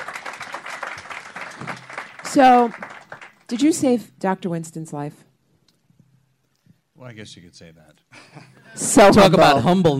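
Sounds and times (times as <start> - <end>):
audience applause: 0.0 - 3.7
speech: 2.3 - 2.8, 3.5 - 5.3, 7.1 - 9.9.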